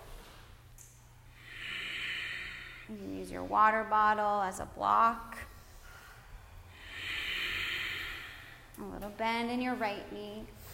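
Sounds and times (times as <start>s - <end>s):
low hum: 0.0s - 10.6s
slow ujjayi breathing: 1.2s - 3.4s, 5.6s - 8.8s
speech: 2.9s - 5.5s, 8.8s - 10.6s.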